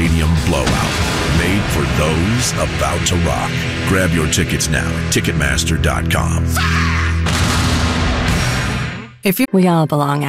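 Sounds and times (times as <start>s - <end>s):
cannon blast: 0.0s - 5.8s, 7.2s - 9.0s
low hum: 0.0s - 6.6s
speech: 1.9s - 7.6s, 9.2s - 10.2s.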